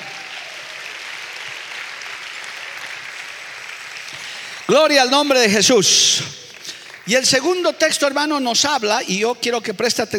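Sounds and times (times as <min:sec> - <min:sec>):
audience applause: 0:00.0 - 0:07.7
speech: 0:04.7 - 0:06.4, 0:07.1 - 0:10.1.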